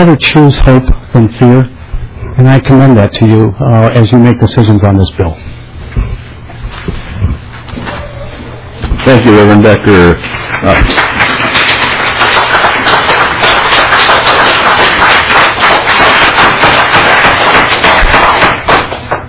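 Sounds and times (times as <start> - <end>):
speech: 0.0 - 1.8, 2.4 - 5.5, 9.0 - 11.0
crowd clapping: 9.0 - 19.2.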